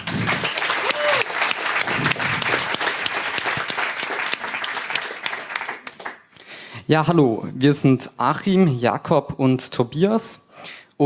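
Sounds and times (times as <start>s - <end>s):
roaring applause: 0.0s - 6.2s
speech: 6.9s - 10.4s.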